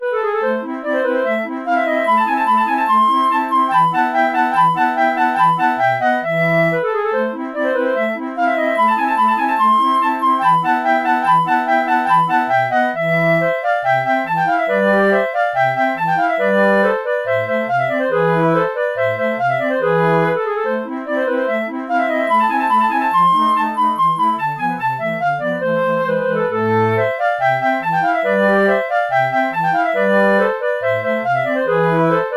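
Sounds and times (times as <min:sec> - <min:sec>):
flute: 0:00.0 - 0:32.3.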